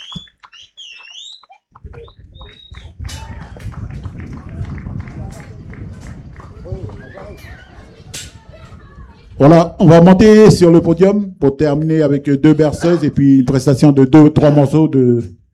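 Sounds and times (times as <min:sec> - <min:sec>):
audience applause: 0:00.0 - 0:07.8
speech: 0:09.4 - 0:15.4.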